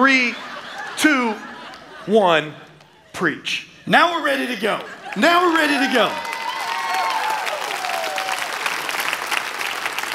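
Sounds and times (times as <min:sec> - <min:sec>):
speech: 0:00.0 - 0:02.6, 0:03.2 - 0:06.3
laughter: 0:00.0 - 0:06.2
audience clapping: 0:04.4 - 0:10.1
whoops and cheers: 0:05.7 - 0:08.7.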